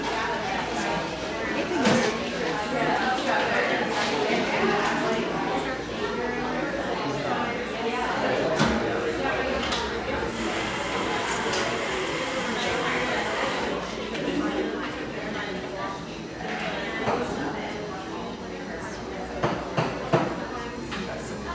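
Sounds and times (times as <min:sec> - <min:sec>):
crowd murmur in the Pearl District, Portland: 0:00.0 - 0:21.5.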